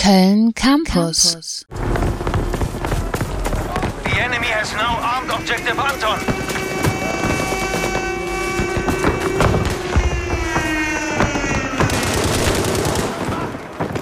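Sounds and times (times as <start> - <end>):
speech: 0.0 - 2.1, 4.2 - 6.8
tonal drones: 1.7 - 13.6
automatic gunfire in the video game Battlefield 5: 11.9 - 13.7.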